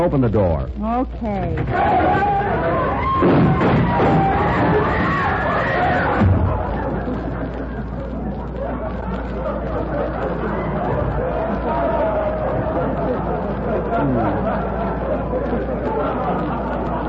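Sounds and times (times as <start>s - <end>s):
speech: 0.0s - 6.5s
crowd of shoppers chattering in a busy bargain basement store: 0.8s - 17.0s
laughter: 1.8s - 17.0s.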